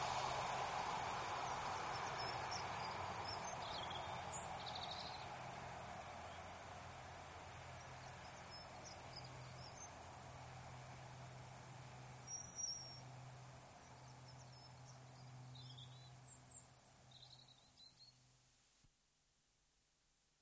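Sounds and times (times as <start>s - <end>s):
diesel express train passing at high speed: 0.0s - 12.2s.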